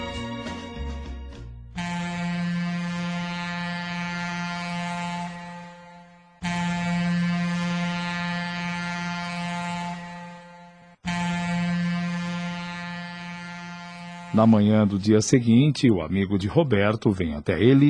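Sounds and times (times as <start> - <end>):
ship's whistle signalling arrival: 1.8 - 14.7
speech: 14.4 - 17.8.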